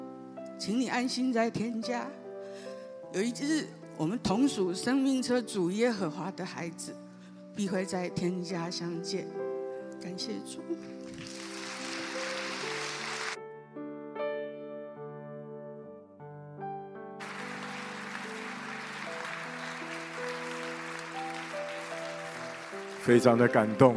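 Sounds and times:
speech: 0:00.6 - 0:02.2, 0:03.1 - 0:07.0, 0:07.6 - 0:09.4, 0:10.0 - 0:11.3, 0:23.1 - 0:23.9
audience applause: 0:11.1 - 0:13.4, 0:17.2 - 0:23.9.

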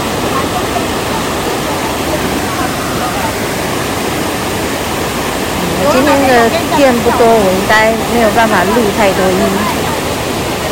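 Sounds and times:
waterfall and stream water flowing: 0:00.0 - 0:10.6
speech: 0:06.4 - 0:09.8.

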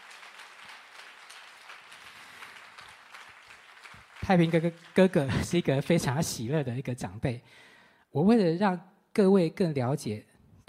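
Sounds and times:
audience clapping to welcome a speaker: 0:00.0 - 0:06.1
speech: 0:04.3 - 0:10.3.

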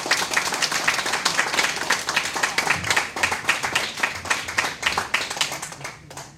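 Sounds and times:
audience applause: 0:00.0 - 0:06.3.

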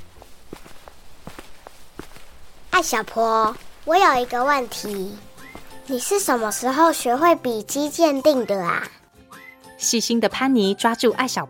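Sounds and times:
footsteps of several people walking: 0:00.0 - 0:07.3
speech: 0:02.8 - 0:05.3, 0:05.9 - 0:09.0, 0:09.8 - 0:11.4.

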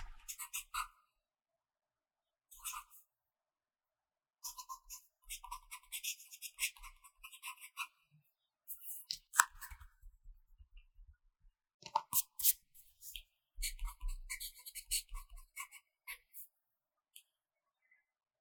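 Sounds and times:
pencil writing on paper: 0:00.2 - 0:01.0, 0:02.6 - 0:03.0, 0:04.4 - 0:08.0, 0:12.2 - 0:16.4.

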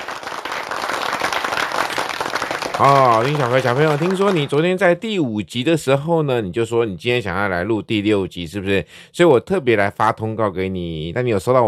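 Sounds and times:
applause welcoming a guest: 0:00.0 - 0:04.8
speech: 0:02.8 - 0:11.6.

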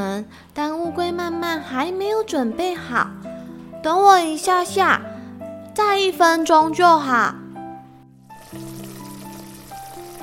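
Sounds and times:
speech: 0:00.0 - 0:05.1, 0:05.8 - 0:07.4
egg sizzling in frying pan: 0:08.3 - 0:10.2.

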